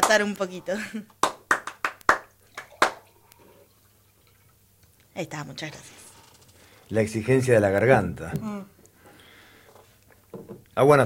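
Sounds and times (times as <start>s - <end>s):
speech: 0.1s - 1.2s, 5.2s - 6.0s, 6.9s - 8.8s, 10.8s - 11.0s
hand claps of one or two people: 1.2s - 3.0s.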